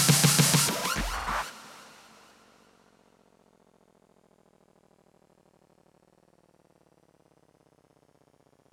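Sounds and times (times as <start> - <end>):
hip hop music: 0.0 - 2.1.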